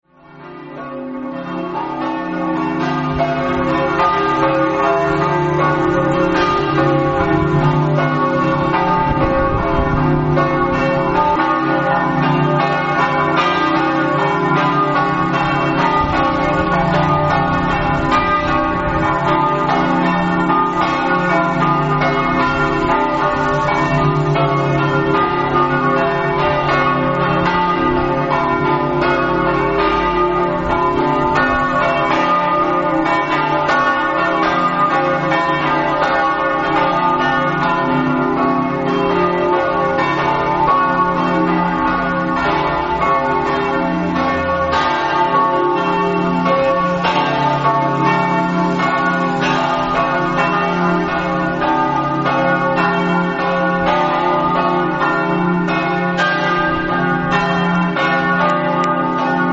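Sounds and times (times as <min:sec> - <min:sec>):
bells ringing: 0:00.2 - 0:59.5.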